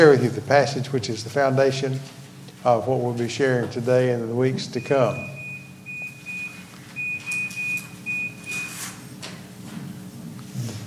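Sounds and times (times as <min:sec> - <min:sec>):
speech: 0:00.0 - 0:05.4
buzzer going off in short high-pitched electronic beeps: 0:04.6 - 0:09.0.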